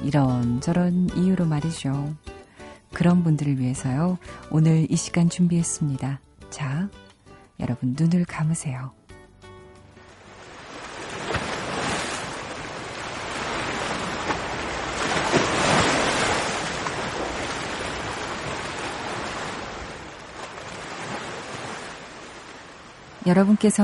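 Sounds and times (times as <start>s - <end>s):
speech: 0.0s - 2.3s, 2.9s - 7.0s, 7.6s - 9.0s, 23.2s - 23.8s
ocean waves breaking on a beach: 10.1s - 23.8s.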